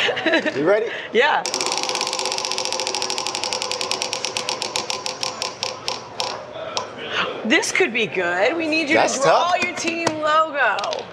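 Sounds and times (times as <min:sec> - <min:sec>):
speech: 0:00.2 - 0:01.6, 0:07.4 - 0:11.1
prize wheel spinning at an ACC Kickoff football media event: 0:01.4 - 0:06.9.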